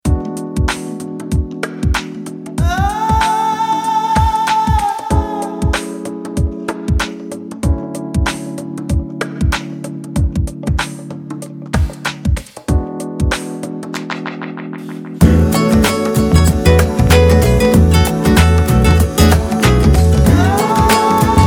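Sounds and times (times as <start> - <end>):
groove music: 0.0 - 21.4.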